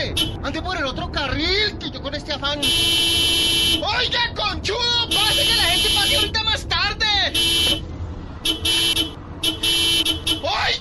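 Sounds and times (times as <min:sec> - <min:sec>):
car horns honking in street traffic: 0:00.1 - 0:00.4, 0:02.6 - 0:03.9, 0:05.0 - 0:06.4, 0:07.3 - 0:10.7
speech: 0:00.5 - 0:05.5.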